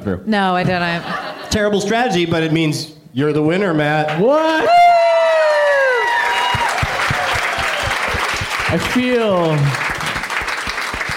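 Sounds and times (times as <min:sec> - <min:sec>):
speech: 0:00.0 - 0:04.8, 0:08.7 - 0:09.8
audience clapping: 0:04.1 - 0:11.1.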